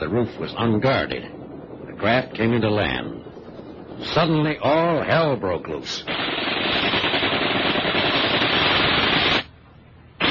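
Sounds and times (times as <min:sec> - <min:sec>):
speech: 0:00.0 - 0:01.4, 0:02.0 - 0:03.3, 0:04.0 - 0:06.2
machine gun fire: 0:06.1 - 0:09.5.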